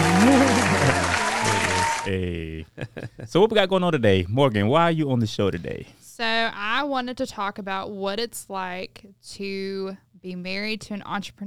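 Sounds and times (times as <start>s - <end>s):
inserted applause sound effect: 0.0s - 2.3s
voices cheering: 0.0s - 2.6s
laughter: 0.0s - 3.4s
speech: 2.1s - 11.4s.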